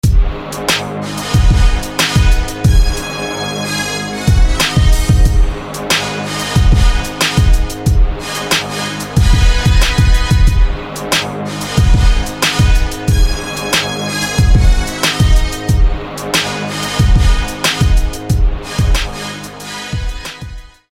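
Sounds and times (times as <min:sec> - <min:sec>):
brass instruments: 0:00.0 - 0:20.9.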